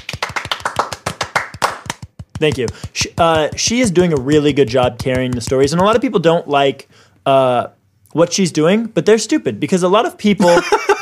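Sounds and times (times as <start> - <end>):
round of applause hand clapping: 0.0 - 6.0
speech: 2.4 - 10.9
laughter: 10.4 - 11.0.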